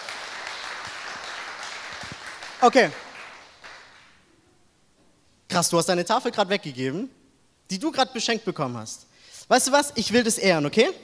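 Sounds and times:
audience applause: 0.0 - 4.1
speech: 2.6 - 3.0, 5.6 - 11.0.

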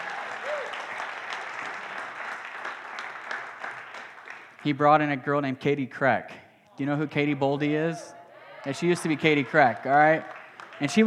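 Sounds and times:
audience applause: 0.0 - 4.6, 8.6 - 11.0
speech: 4.6 - 11.0.

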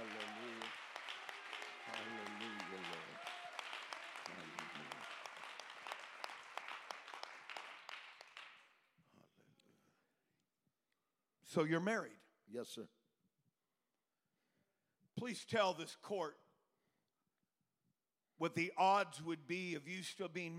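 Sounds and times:
audience clapping hands: 0.0 - 8.8
speech: 11.6 - 13.0, 15.2 - 16.4, 18.4 - 20.5.

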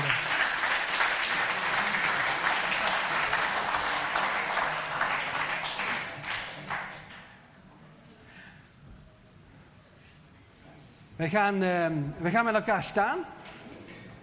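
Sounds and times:
applause: 0.0 - 7.4
speech: 11.2 - 13.4.

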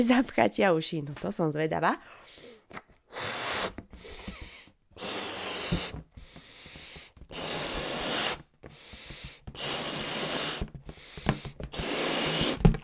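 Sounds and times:
speech: 0.0 - 3.4
person blowing up a balloon by mouth: 2.7 - 12.8.

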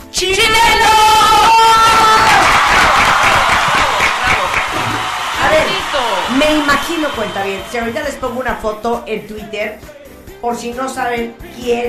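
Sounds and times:
speech: 0.1 - 1.0, 6.4 - 11.8
applause: 1.3 - 8.6.

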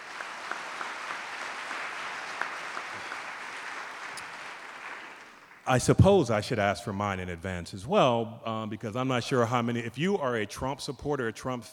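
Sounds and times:
audience round of applause: 0.0 - 5.6
speech: 5.7 - 11.7.

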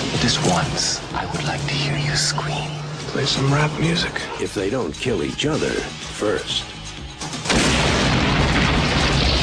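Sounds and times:
speech: 0.1 - 6.7
bomb explosion: 7.5 - 9.4.

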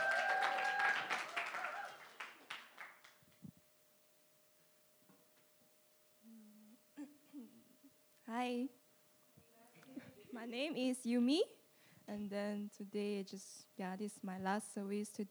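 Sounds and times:
audience applause welcoming a speaker at a church service: 0.0 - 3.2
speech: 8.3 - 8.8, 10.4 - 15.3.

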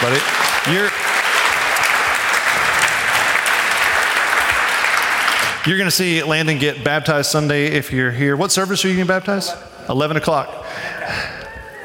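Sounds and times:
audience clapping: 0.0 - 6.6, 11.3 - 11.8
speech: 0.2 - 1.1, 5.6 - 11.3
person whooping: 10.9 - 11.8.

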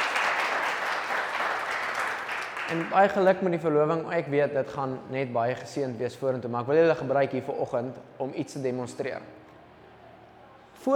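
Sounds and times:
crowd clapping: 0.0 - 3.2
speech: 2.7 - 9.4.

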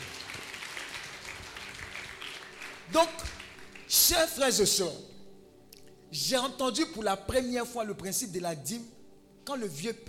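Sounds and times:
crowd applauding: 0.0 - 4.1
speech: 2.9 - 5.2, 6.1 - 10.0.

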